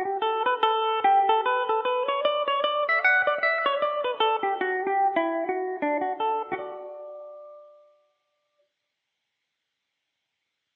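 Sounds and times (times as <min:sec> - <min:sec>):
mandolin playing in D major: 0:00.0 - 0:07.6.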